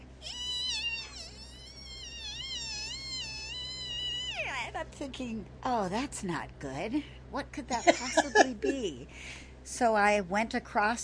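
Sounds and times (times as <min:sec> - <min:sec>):
voice imitating the whine of blown wheel bearings: 0:00.0 - 0:04.6
speech: 0:04.6 - 0:11.0.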